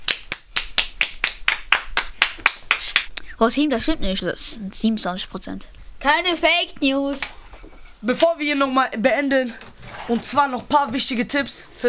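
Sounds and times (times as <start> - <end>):
applause: 0.0 - 3.1
speech: 3.4 - 7.4, 8.0 - 11.8.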